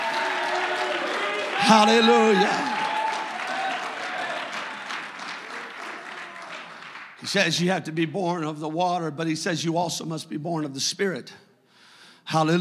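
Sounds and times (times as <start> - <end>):
audience shouting: 0.0 - 6.7
audience clapping hands: 0.0 - 7.6
speech: 1.7 - 2.8, 7.3 - 11.5, 12.3 - 12.5.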